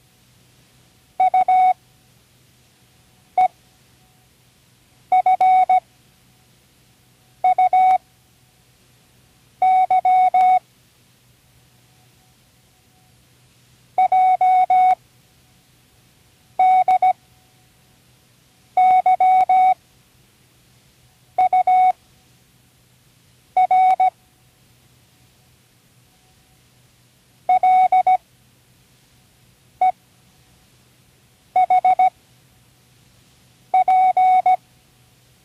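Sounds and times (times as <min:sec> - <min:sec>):
morse code of random letters: 0:01.2 - 0:01.8, 0:05.1 - 0:05.8, 0:07.4 - 0:08.0, 0:09.6 - 0:10.6, 0:14.0 - 0:15.0, 0:16.6 - 0:17.2, 0:18.8 - 0:19.8, 0:21.4 - 0:21.9, 0:23.6 - 0:24.1, 0:27.5 - 0:28.2, 0:31.6 - 0:32.1, 0:33.8 - 0:34.6.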